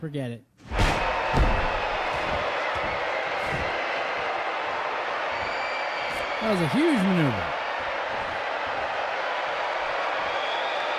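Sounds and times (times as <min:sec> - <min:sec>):
speech: 0:00.0 - 0:01.7, 0:06.4 - 0:07.6
brief thump: 0:00.7 - 0:03.7
video game crowd roaring: 0:00.7 - 0:10.9.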